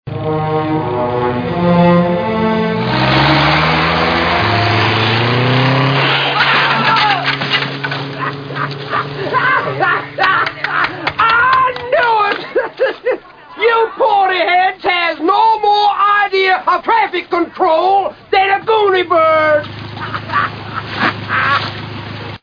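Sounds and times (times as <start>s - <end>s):
traffic: 0.0s - 22.4s
laughter: 7.9s - 14.2s, 19.9s - 21.8s.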